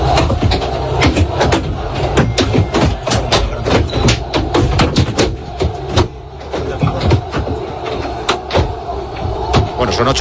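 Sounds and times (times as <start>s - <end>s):
objects thrown at a bus striking it, heard inside: 0.0s - 9.9s.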